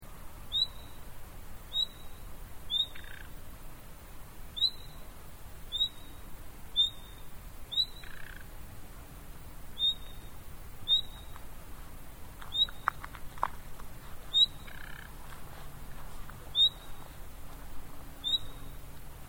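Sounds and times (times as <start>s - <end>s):
common nightingale whistled call: 0.5s - 1.1s, 1.7s - 3.3s, 4.5s - 5.1s, 5.7s - 8.3s, 9.8s - 11.4s, 12.5s - 12.9s, 14.3s - 15.0s, 16.5s - 17.1s, 18.2s - 18.8s.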